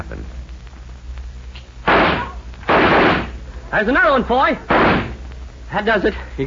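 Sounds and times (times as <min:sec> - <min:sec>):
gunshots at tin cans for target practice on a cattle ranch: 0:01.8 - 0:03.4, 0:04.6 - 0:05.2
speech: 0:03.7 - 0:05.1, 0:05.7 - 0:06.4.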